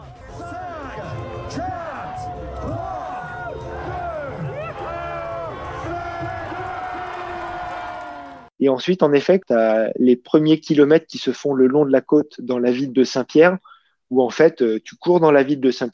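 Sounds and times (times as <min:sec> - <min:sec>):
thousands of spectators shouting at race start: 0:00.0 - 0:08.5
speech: 0:01.0 - 0:01.9, 0:08.6 - 0:15.9.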